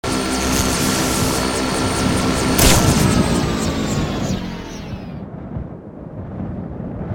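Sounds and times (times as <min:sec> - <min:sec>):
joy buzzer buzzing: 0:00.0 - 0:05.2.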